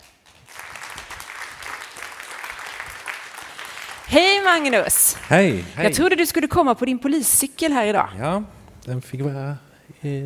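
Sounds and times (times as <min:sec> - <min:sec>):
crowd applause: 0:00.0 - 0:06.5
speech: 0:04.1 - 0:10.2.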